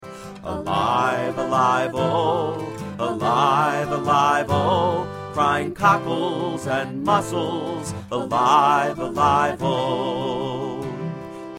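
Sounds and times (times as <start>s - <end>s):
folk song vocal: 0.1s - 11.5s.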